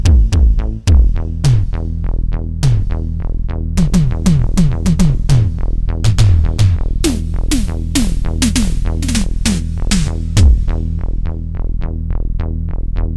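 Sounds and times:
Korg DSS-1 drums: 0:00.0 - 0:01.9, 0:02.6 - 0:03.1, 0:03.8 - 0:11.3
Korg DSS-1 synth bass: 0:00.0 - 0:13.1.

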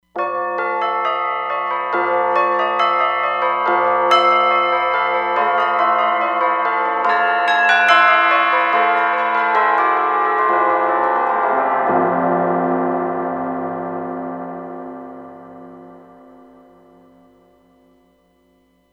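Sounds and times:
bell ringing: 0:00.4 - 0:13.5.

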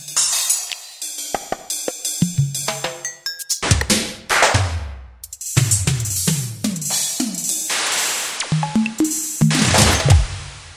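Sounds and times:
drums: 0:00.0 - 0:10.7.

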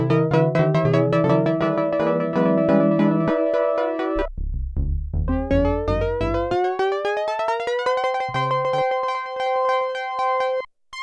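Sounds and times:
Oberheim OB-8 synthesizer bouncing ball factory patch: 0:00.0 - 0:11.0.

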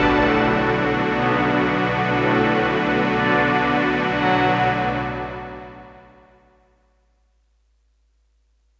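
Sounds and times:
synth pad layer on an M-Audio Venom: 0:00.0 - 0:06.5.

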